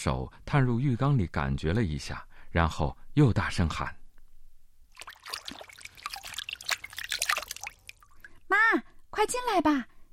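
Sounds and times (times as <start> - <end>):
speech: 0.0 - 4.0, 8.7 - 9.9
rain dripping: 5.0 - 8.4.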